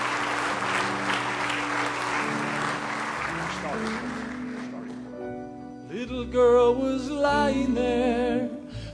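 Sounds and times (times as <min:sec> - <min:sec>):
audience hand clapping: 0:00.0 - 0:05.2
speech: 0:06.2 - 0:08.5.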